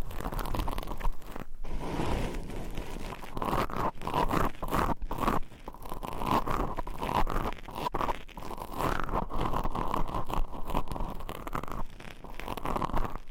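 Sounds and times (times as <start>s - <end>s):
nails scratching across microphones and mic covers: 0.0s - 13.2s.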